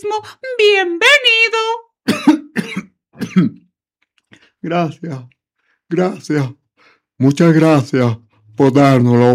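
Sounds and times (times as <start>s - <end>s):
speech: 0.2s - 1.4s, 3.4s - 3.6s, 4.6s - 5.4s, 5.9s - 6.6s, 7.2s - 9.3s
person coughing after choking slightly: 2.1s - 3.7s.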